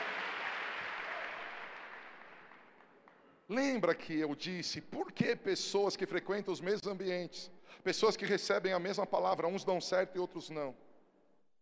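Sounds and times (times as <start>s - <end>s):
audience applause: 0.0s - 3.1s
speech: 3.5s - 10.8s.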